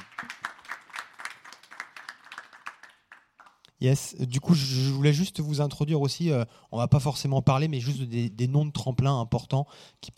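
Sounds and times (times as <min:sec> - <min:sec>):
audience applause: 0:00.0 - 0:03.6
speech: 0:03.8 - 0:10.1.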